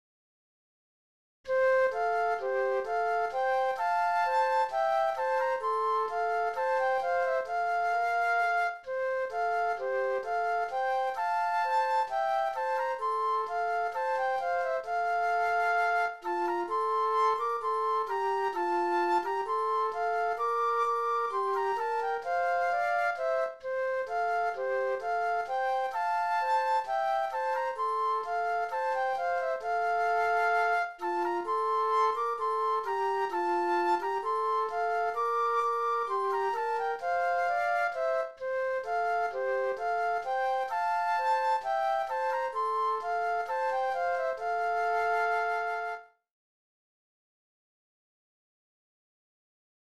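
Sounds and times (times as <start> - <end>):
flute duet: 1.5 - 46.3.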